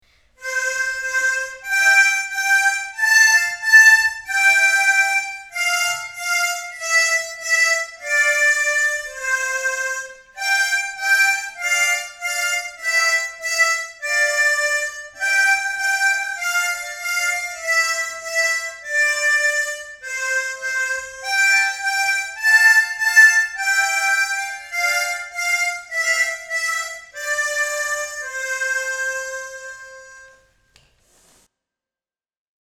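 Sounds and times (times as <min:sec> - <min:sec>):
harmonica playing: 0:00.4 - 0:30.6.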